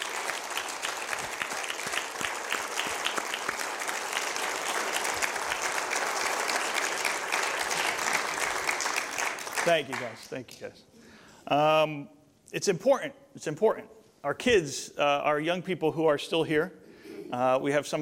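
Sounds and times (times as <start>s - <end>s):
audience applauding: 0.0s - 10.3s
speech: 9.7s - 17.9s.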